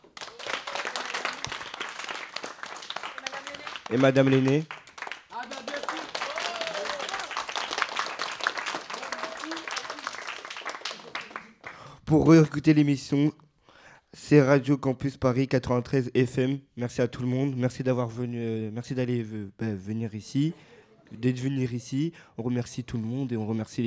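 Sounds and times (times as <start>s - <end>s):
audience applause: 0.0s - 11.8s
speech: 3.9s - 4.8s, 12.1s - 13.4s, 14.3s - 23.8s.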